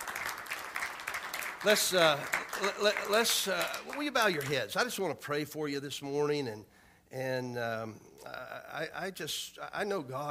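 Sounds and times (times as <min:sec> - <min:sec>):
audience hand clapping: 0:00.0 - 0:04.7
speech: 0:01.6 - 0:10.2.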